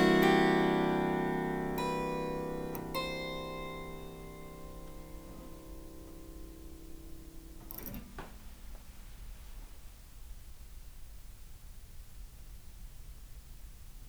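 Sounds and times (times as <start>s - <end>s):
harpsichord: 0.0s - 8.1s.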